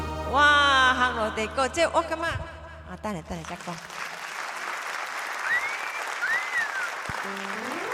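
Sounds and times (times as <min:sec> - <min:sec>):
speech: 0:01.1 - 0:04.0, 0:07.3 - 0:07.7
audience applause: 0:03.5 - 0:07.9
sliding whistle-like tones: 0:05.5 - 0:07.0.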